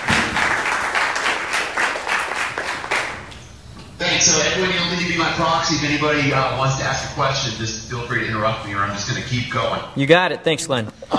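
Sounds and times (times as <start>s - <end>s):
audience applause: 0.0s - 3.3s
speech: 4.3s - 11.1s.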